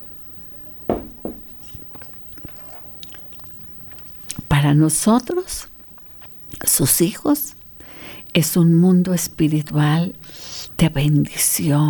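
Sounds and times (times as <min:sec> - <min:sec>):
person sipping water: 0:01.5 - 0:04.5
speech: 0:04.6 - 0:05.7, 0:06.8 - 0:07.6, 0:08.4 - 0:11.8.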